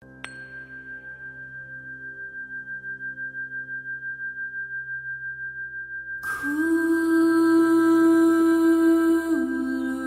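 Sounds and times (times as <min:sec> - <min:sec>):
healing chant: 0:06.2 - 0:10.0.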